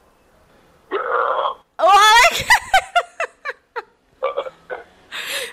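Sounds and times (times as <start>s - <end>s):
burp: 0.9s - 1.7s, 4.2s - 4.9s.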